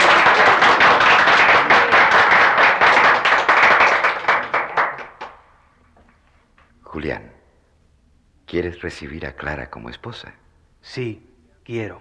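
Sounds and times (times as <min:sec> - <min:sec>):
audience applause: 0:00.0 - 0:05.4
speech: 0:08.5 - 0:11.9.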